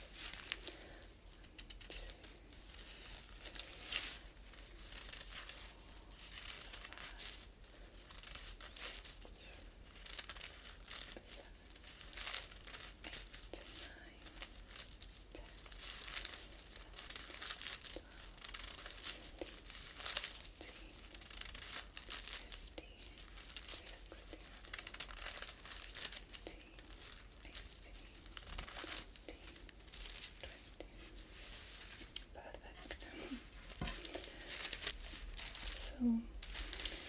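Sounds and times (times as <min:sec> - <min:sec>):
paper sheets crinkling as they are folded and popped out: 0:00.0 - 0:37.0.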